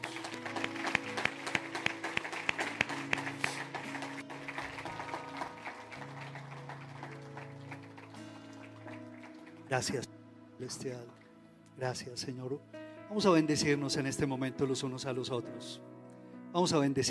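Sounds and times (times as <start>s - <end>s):
audience applause: 0.0s - 9.9s
speech: 9.7s - 11.2s, 11.8s - 15.9s, 16.5s - 17.0s.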